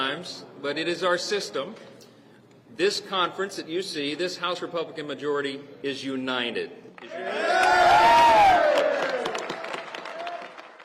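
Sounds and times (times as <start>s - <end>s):
speech: 0.1s - 2.0s, 2.7s - 8.6s
politicians clapping at press conference: 6.9s - 10.8s.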